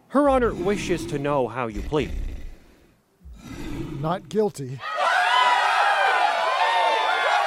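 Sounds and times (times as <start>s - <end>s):
speech: 0.4s - 2.3s, 4.0s - 4.9s
loud dense crowd cheering and shouting: 4.8s - 7.4s.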